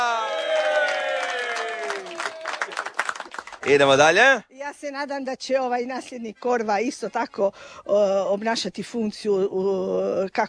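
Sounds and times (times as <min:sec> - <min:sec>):
audience applause for Furio Radin: 0:00.0 - 0:04.2
speech: 0:03.6 - 0:10.4.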